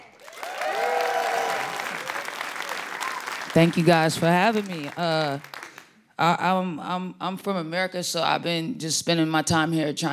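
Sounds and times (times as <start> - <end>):
audience applause: 0.1 - 5.9
speech: 3.5 - 5.5, 6.2 - 10.1.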